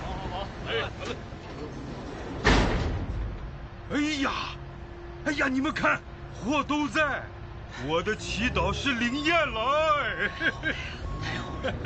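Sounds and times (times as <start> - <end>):
voices and murmur: 0.0 - 2.2, 3.9 - 11.8
door opening thud: 2.2 - 3.3
speech: 3.9 - 4.6, 5.2 - 11.8
laughter: 10.0 - 11.8.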